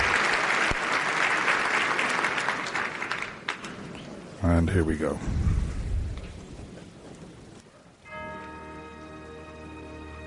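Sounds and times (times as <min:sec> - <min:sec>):
audience applause: 0:00.0 - 0:03.9
speech: 0:04.4 - 0:05.6.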